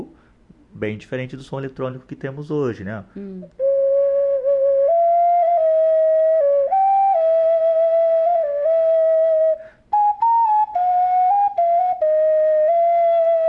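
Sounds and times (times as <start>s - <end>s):
speech: 0.8s - 3.6s
flute being played: 3.6s - 13.4s.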